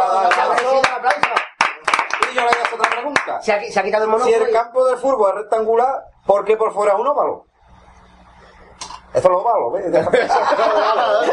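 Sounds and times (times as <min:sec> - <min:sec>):
sharp hand claps: 0:00.2 - 0:03.4
speech: 0:03.4 - 0:07.5, 0:09.2 - 0:11.3
laughter: 0:09.9 - 0:11.3.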